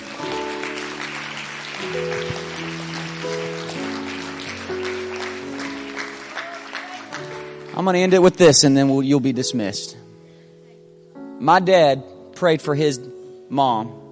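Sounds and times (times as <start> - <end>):
audience clapping hands: 0.0 - 8.6
speech: 1.8 - 3.6, 7.8 - 10.0, 11.4 - 14.0.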